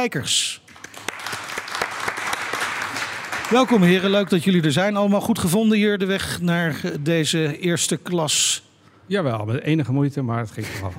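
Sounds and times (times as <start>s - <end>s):
speech: 0.0s - 0.6s, 3.5s - 10.9s
audience applauding two jury members: 0.7s - 4.5s.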